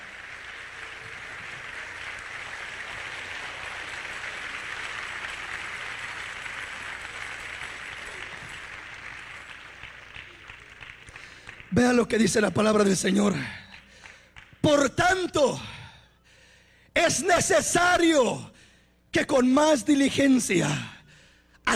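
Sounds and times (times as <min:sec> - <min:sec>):
audience clapping hands: 0:00.0 - 0:15.6
speech: 0:11.7 - 0:13.6, 0:17.2 - 0:18.5, 0:19.1 - 0:20.9.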